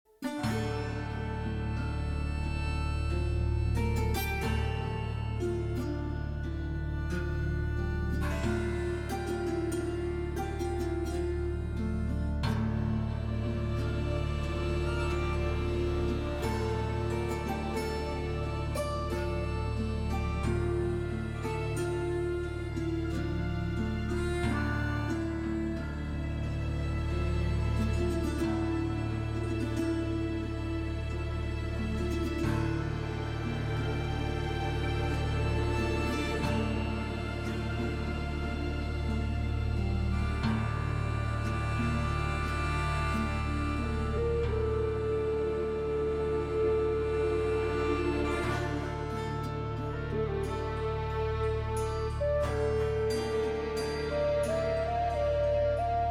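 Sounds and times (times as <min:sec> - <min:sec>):
sad slums ambience: 0:00.2 - 0:56.0.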